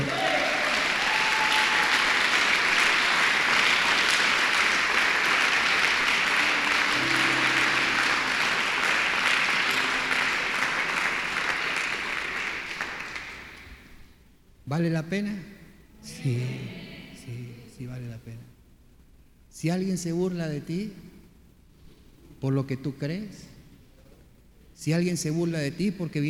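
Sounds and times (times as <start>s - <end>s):
audience applause: 0.0s - 13.7s
speech: 14.8s - 18.0s, 19.6s - 21.0s, 22.4s - 23.5s, 24.8s - 26.2s.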